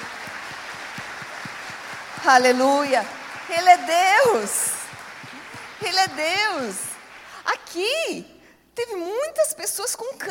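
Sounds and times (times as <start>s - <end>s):
applause: 0.0s - 8.0s
speech: 2.2s - 4.6s, 5.8s - 6.9s, 7.5s - 10.2s.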